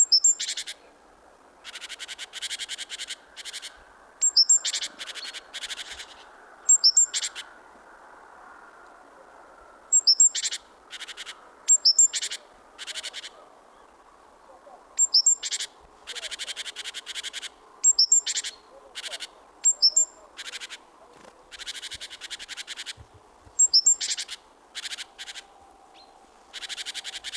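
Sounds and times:
great tit scolding: 0:01.6 - 0:07.5, 0:09.9 - 0:13.4, 0:15.0 - 0:25.5, 0:26.5 - 0:27.3.

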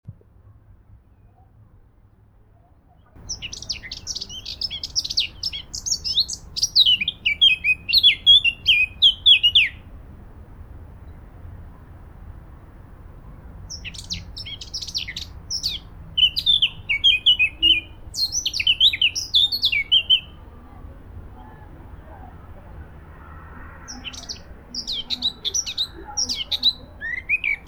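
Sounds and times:
Sylvia atricapilla singing: 0:03.2 - 0:09.8, 0:13.5 - 0:20.5, 0:23.9 - 0:27.6.

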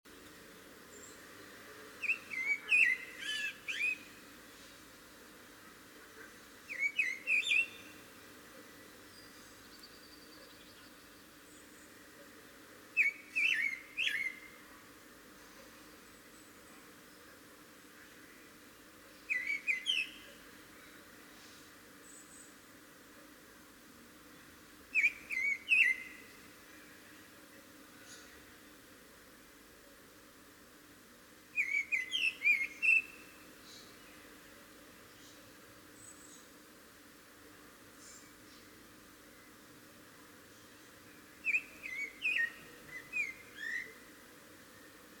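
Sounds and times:
Turdus merula singing: 0:02.0 - 0:04.2, 0:06.7 - 0:08.0, 0:13.0 - 0:14.6, 0:19.2 - 0:20.4, 0:24.9 - 0:26.4, 0:31.6 - 0:34.2, 0:40.6 - 0:44.0.

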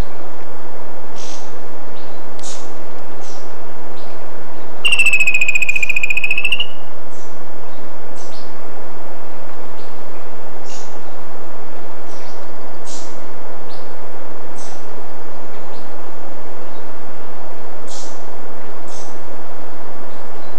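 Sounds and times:
short high chirps: 0:04.8 - 0:06.8
bird trilling: 0:04.8 - 0:06.9.

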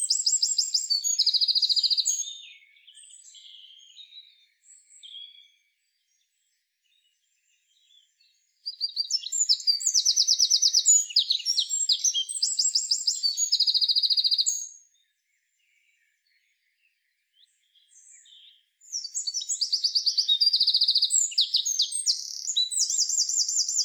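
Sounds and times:
Eurasian wren song: 0:00.0 - 0:05.4, 0:08.6 - 0:14.9, 0:17.4 - 0:23.8.

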